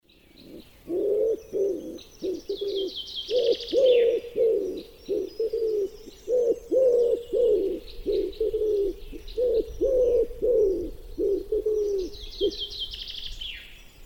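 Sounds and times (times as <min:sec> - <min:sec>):
common wood pigeon cooing: 0:00.4 - 0:13.0.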